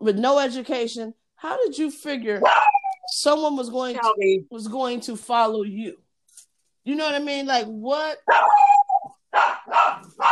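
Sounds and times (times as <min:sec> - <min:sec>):
speech: 0:00.0 - 0:06.0, 0:06.8 - 0:08.8
small Yorkipoo dog barking sharply: 0:02.4 - 0:02.9, 0:08.3 - 0:10.3
small Yorkipoo dog whining: 0:02.4 - 0:03.1, 0:08.3 - 0:09.2.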